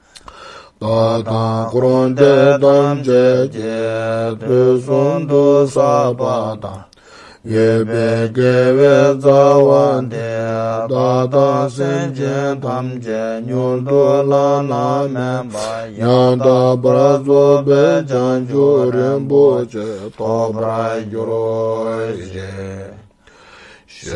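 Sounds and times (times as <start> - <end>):
prayer: 0.8 - 23.2, 23.8 - 24.1.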